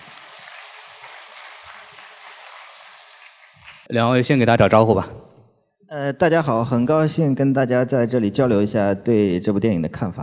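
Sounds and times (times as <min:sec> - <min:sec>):
audience applause: 0:00.0 - 0:03.9
speech: 0:03.8 - 0:05.3, 0:05.9 - 0:10.2.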